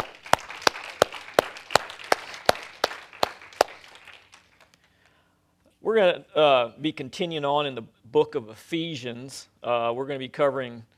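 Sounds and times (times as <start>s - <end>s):
rhythmic clapping: 0.0s - 5.2s
speech: 5.9s - 10.9s.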